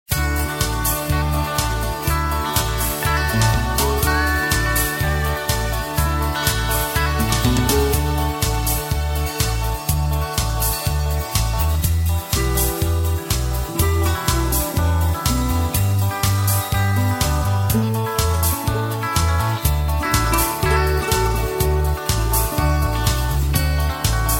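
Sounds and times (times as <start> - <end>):
music: 0.1 - 24.3.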